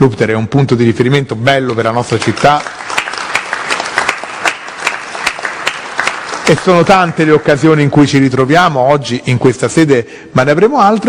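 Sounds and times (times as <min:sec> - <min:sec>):
speech: 0:00.0 - 0:02.9, 0:06.5 - 0:11.0
audience applause: 0:02.0 - 0:07.4.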